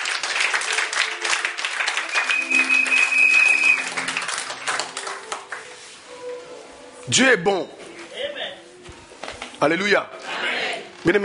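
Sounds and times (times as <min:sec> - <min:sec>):
church congregation clapping: 0:00.0 - 0:05.9
thin high whistle-like tone: 0:02.1 - 0:03.9
speech: 0:07.1 - 0:07.8, 0:09.6 - 0:10.2, 0:11.0 - 0:11.2.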